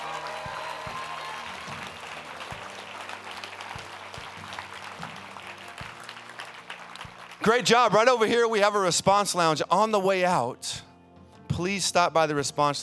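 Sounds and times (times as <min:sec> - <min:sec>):
audience clapping: 0:00.0 - 0:08.9
speech: 0:07.4 - 0:10.8, 0:11.6 - 0:12.8.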